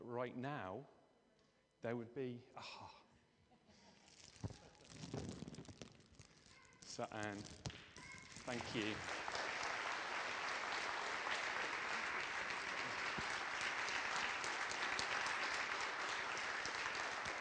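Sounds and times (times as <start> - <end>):
speech: 0.1 - 1.0, 1.8 - 3.0, 6.9 - 7.8, 8.5 - 9.2
audience applause: 8.4 - 17.4.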